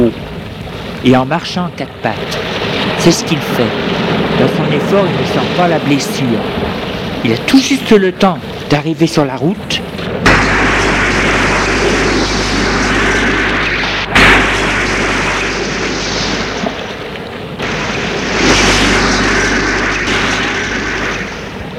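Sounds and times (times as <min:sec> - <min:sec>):
speech: 0:01.0 - 0:09.9
car exploding: 0:10.1 - 0:21.7.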